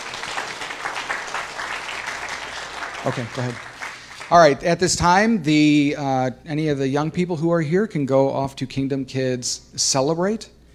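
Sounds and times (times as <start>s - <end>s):
crowd applauding: 0.0s - 4.7s
speech: 3.0s - 3.7s, 4.3s - 10.6s.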